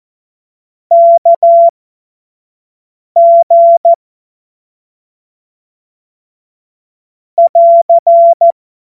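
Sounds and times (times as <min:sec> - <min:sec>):
Morse code course tones: 0:00.9 - 0:01.7, 0:03.2 - 0:04.0, 0:07.4 - 0:08.5.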